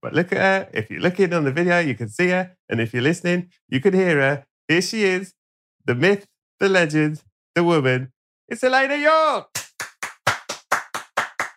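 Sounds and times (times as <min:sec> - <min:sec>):
speech: 0:00.0 - 0:09.6
hand clapping: 0:09.5 - 0:11.5.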